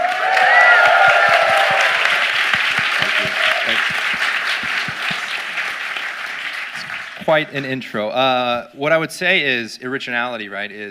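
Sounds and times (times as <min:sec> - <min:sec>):
audience applause: 0:00.0 - 0:07.6
speech: 0:07.3 - 0:10.8.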